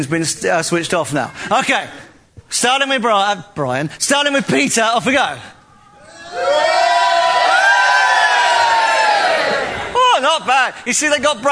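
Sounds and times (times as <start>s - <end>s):
speech: 0.0s - 5.6s, 10.3s - 11.5s
audience cheering: 6.0s - 10.0s.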